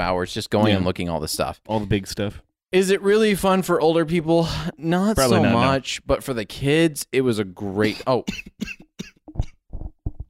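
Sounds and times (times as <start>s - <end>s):
speech: 0.0s - 9.1s
person coughing after choking on a drink: 7.8s - 9.6s.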